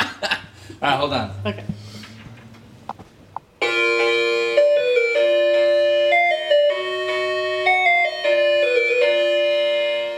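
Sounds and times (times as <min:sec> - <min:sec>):
speech: 0:00.2 - 0:01.8
musical doorbell playing a song: 0:03.6 - 0:10.1.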